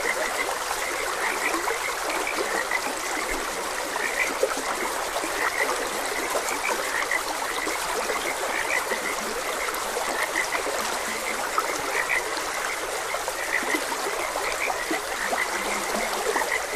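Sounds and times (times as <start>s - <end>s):
flowing water: 0.0s - 16.7s
frogs croaking: 0.0s - 16.7s.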